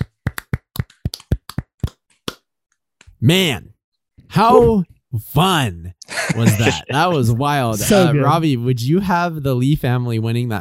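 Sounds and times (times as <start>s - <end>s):
hosts clapping hands: 0.0s - 3.1s
speech: 3.2s - 3.7s, 4.3s - 10.5s
laughter: 6.0s - 8.4s.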